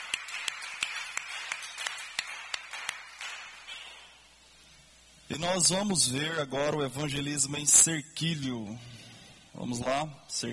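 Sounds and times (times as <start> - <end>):
clapping: 0.0 - 4.0
speech: 5.3 - 9.0, 9.6 - 10.5.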